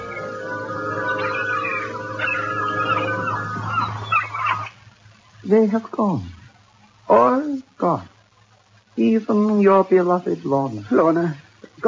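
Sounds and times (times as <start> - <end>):
screeching seagull: 0.0 - 4.8
speech: 5.5 - 6.4, 7.1 - 8.1, 9.0 - 11.8.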